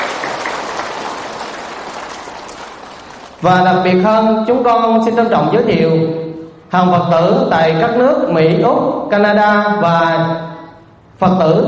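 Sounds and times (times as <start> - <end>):
crowd applause: 0.0 - 3.4
speech: 3.4 - 10.5, 11.2 - 11.6.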